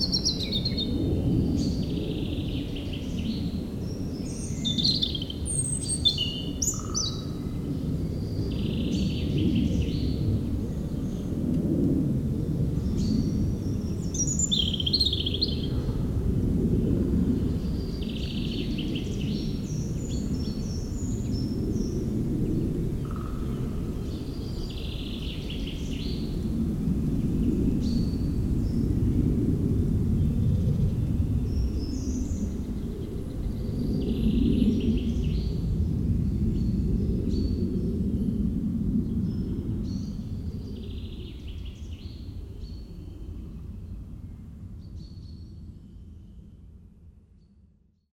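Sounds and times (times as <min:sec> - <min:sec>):
European robin singing: 0:00.0 - 0:00.9, 0:04.3 - 0:07.3, 0:14.0 - 0:15.7
continuous low roar of aircraft: 0:00.0 - 0:44.6.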